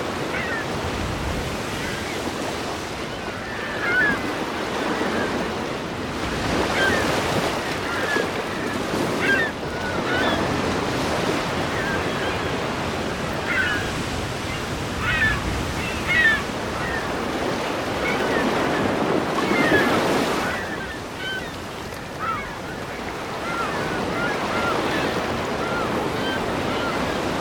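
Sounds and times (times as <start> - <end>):
seaside ambience: 0.0 - 27.4.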